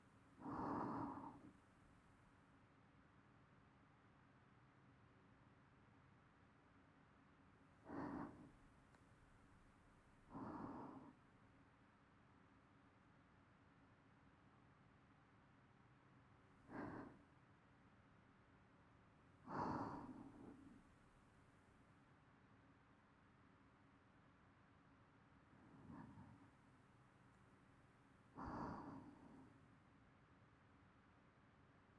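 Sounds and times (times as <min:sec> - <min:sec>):
person breathing in sleep loop: 0:00.4 - 0:01.6, 0:07.9 - 0:08.8, 0:10.2 - 0:11.2, 0:16.7 - 0:17.2, 0:19.5 - 0:20.9, 0:25.6 - 0:26.6, 0:28.4 - 0:29.6.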